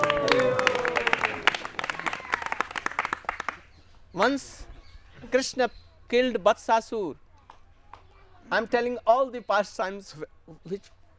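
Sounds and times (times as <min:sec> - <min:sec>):
hand clapping: 0:00.0 - 0:03.7
speech: 0:04.2 - 0:04.7, 0:05.3 - 0:07.2, 0:08.5 - 0:11.0.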